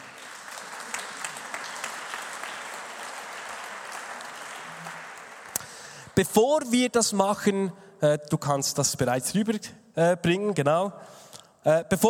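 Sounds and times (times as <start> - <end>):
audience applause: 0.0 - 6.0
speech: 6.2 - 12.0.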